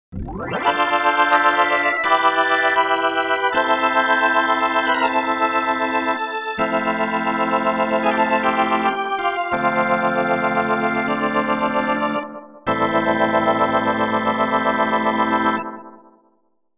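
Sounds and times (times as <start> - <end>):
Yamaha CP88 organ: 0.3 - 16.1.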